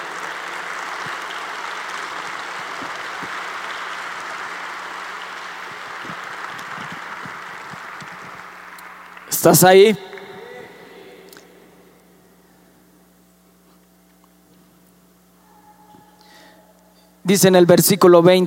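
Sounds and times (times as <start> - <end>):
crowd applause: 0.0 - 11.0
speech: 9.4 - 10.1, 17.3 - 18.4.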